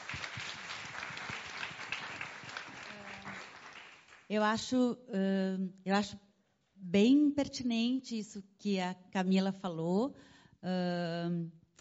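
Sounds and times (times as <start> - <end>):
audience applause: 0.0 - 4.3
speech: 4.3 - 6.3, 6.9 - 11.6.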